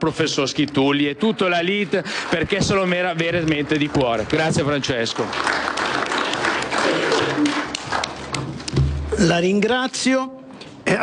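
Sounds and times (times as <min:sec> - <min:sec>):
speech: 0:00.0 - 0:06.0, 0:09.2 - 0:11.0
audience applause: 0:01.6 - 0:08.8.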